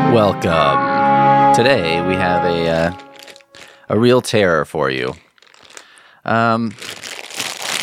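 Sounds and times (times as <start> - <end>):
speech: 0.2 - 0.9, 1.6 - 3.0, 3.9 - 5.2, 6.2 - 6.9
plastic package of Spangler Marshmallow Circus Peanuts crinkling: 2.7 - 3.8, 5.0 - 7.8.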